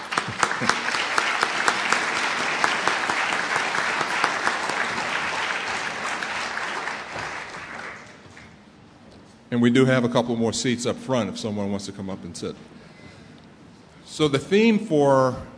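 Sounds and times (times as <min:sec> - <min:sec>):
audience applause: 0:00.0 - 0:08.5
speech: 0:00.3 - 0:00.8, 0:09.5 - 0:12.8, 0:14.2 - 0:15.5.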